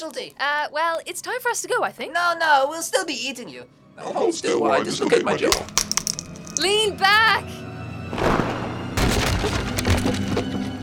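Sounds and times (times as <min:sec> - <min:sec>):
speech: 0:00.0 - 0:05.8, 0:06.6 - 0:08.3
wooden chairs breaking: 0:08.2 - 0:10.5.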